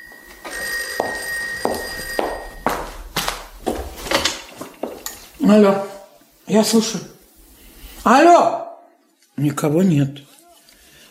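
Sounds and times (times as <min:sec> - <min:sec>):
telephone bell ringing: 0:00.0 - 0:05.0
clattering knocks and bangs: 0:01.6 - 0:05.4
speech: 0:05.5 - 0:05.9, 0:06.5 - 0:07.2, 0:08.0 - 0:08.6, 0:09.4 - 0:10.3.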